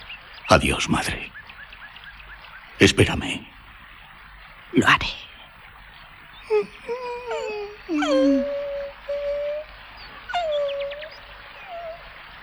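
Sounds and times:
speech: 0.5s - 1.4s, 2.8s - 3.5s, 4.7s - 5.3s, 6.5s - 8.6s
wolf whimpering and howling: 6.4s - 12.2s.

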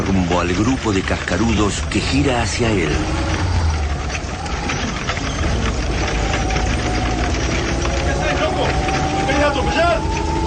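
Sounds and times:
Rastrojero pickup truck engine loaded with gas bottles driving: 0.0s - 10.4s
speech: 0.3s - 3.4s.

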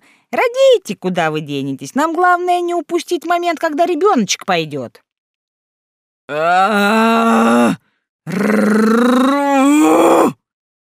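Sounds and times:
speech: 0.3s - 5.1s, 6.3s - 10.1s
man groaning in pain: 6.3s - 10.4s.

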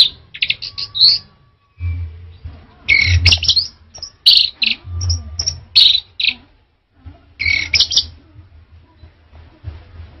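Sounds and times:
orange-headed thrush singing: 0.0s - 6.4s
low rumbling background noise: 0.0s - 10.1s.

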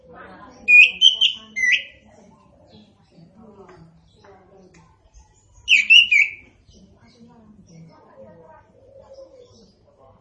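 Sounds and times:
orange-headed thrush song: 0.7s - 1.9s, 5.7s - 6.4s.

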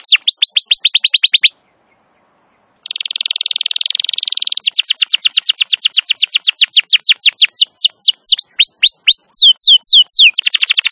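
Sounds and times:
Atlantic canary song: 0.0s - 10.9s.

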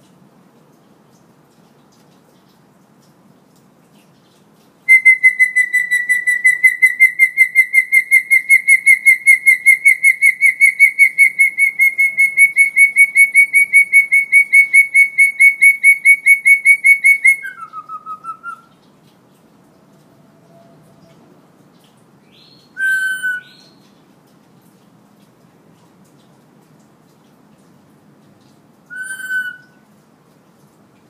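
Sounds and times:
hill myna whistling: 4.9s - 18.7s, 28.9s - 29.7s.

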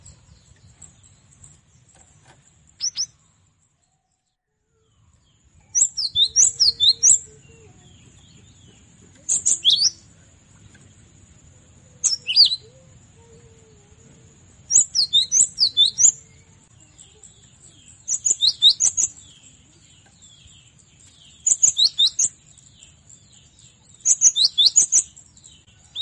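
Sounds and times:
cinereous tit whistling song: 2.8s - 3.2s, 5.7s - 7.5s, 9.3s - 10.1s, 12.0s - 12.7s, 14.7s - 16.2s, 18.0s - 19.2s, 21.4s - 22.4s, 24.0s - 25.2s.

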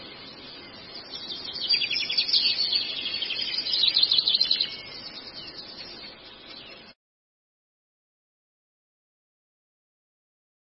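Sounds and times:
long-tailed shrike delivering rapid buzzy trills and high chattering notes: 0.0s - 6.9s.

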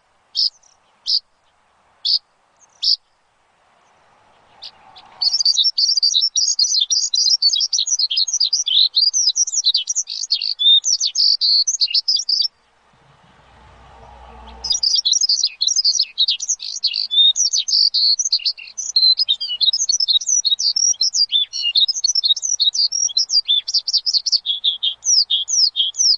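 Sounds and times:
Javan bush lark singing on a lure recording: 0.0s - 26.1s.

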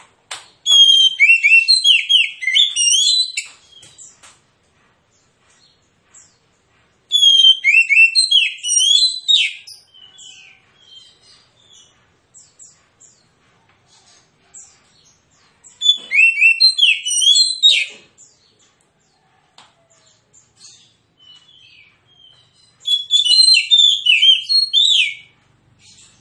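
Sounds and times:
magpie-robin rapid-fire song: 0.6s - 4.1s, 7.1s - 12.8s, 15.6s - 18.0s, 20.6s - 26.1s.

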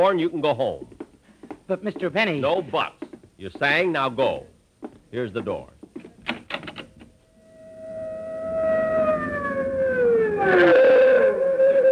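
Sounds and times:
speech: 0.0s - 1.0s, 1.7s - 5.8s, 10.5s - 10.7s
fire engine siren: 7.3s - 11.9s.

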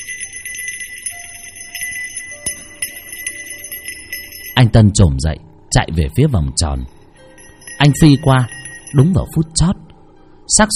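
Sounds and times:
hand bell being shaken: 0.0s - 4.9s, 6.8s - 9.6s
speech: 4.6s - 7.0s, 7.8s - 9.8s, 10.5s - 10.7s.

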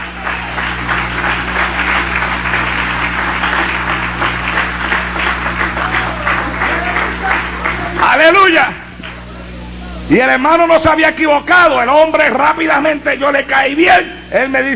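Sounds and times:
crowd applauding: 0.0s - 9.8s
low hum: 0.0s - 14.7s
speech: 8.3s - 8.8s, 10.1s - 14.7s.

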